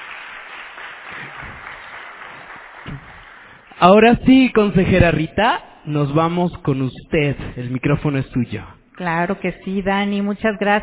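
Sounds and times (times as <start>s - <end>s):
audience applause: 0.0s - 3.8s
speech: 3.8s - 10.8s.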